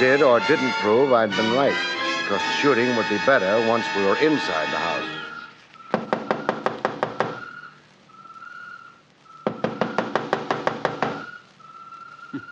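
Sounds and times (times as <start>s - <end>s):
speech: 0.0s - 5.2s
knocking on a door: 5.9s - 7.4s, 9.5s - 11.3s.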